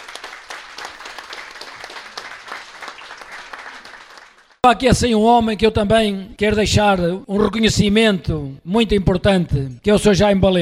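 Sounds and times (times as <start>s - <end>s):
audience applause: 0.0s - 4.6s
speech: 4.6s - 10.5s.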